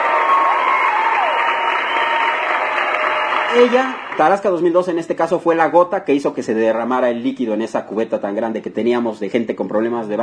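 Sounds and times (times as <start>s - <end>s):
applause: 0.0s - 4.8s
speech: 3.6s - 10.2s.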